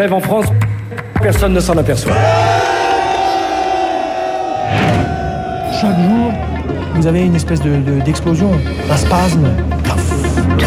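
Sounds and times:
speech: 0.0 - 0.6, 1.2 - 2.8, 5.7 - 9.9
crowd of protesters shouting in anger: 2.0 - 7.0.

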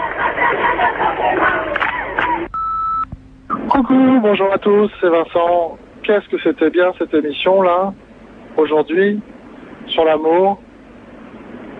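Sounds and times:
protest crowd shouting and chanting: 0.0 - 2.5
speech: 3.8 - 8.0, 8.6 - 9.3, 9.9 - 10.6.

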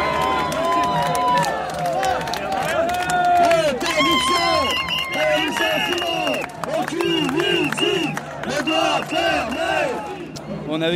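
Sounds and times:
roadside crowd applauding outdoors: 0.0 - 10.2
whistles and shouts: 4.0 - 9.9
speech: 10.8 - 10.9.

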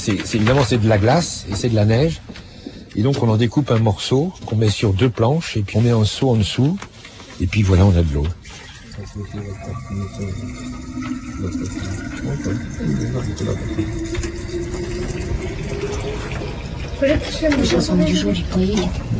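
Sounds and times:
speech: 0.0 - 14.4, 17.0 - 19.1
tea poured into a thermos: 6.8 - 19.1.

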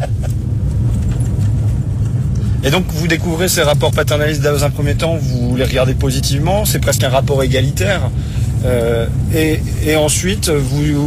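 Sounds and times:
Fiat Panda engine and road rumble driving on dry terrain: 0.0 - 11.0
speech: 2.6 - 11.0.

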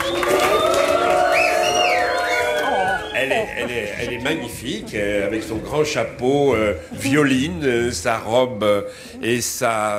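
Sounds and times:
audience applauding: 0.0 - 4.4
speech: 3.6 - 9.9.

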